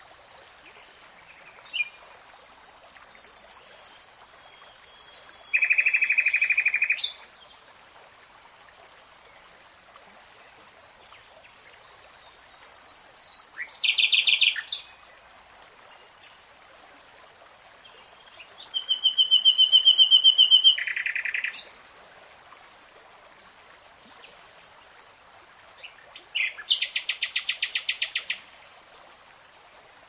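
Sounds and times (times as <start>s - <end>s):
nightingale song: 1.2s - 7.3s, 12.5s - 16.4s, 18.2s - 21.8s, 25.8s - 30.0s.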